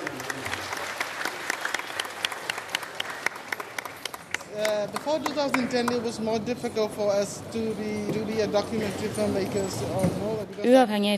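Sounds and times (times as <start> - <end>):
standing ovation applause in cinema hall: 0.0 - 6.2
speech: 4.8 - 11.1.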